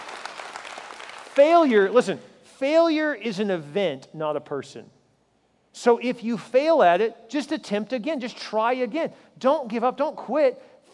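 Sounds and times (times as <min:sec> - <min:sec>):
audience applause: 0:00.0 - 0:01.4
speech: 0:01.4 - 0:05.0, 0:05.8 - 0:10.7.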